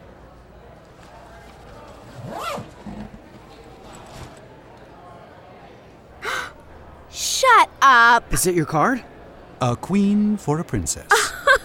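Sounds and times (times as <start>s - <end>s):
bag zipper being pulled open: 2.0s - 4.4s
speech: 8.2s - 11.2s
laughter: 11.1s - 11.6s.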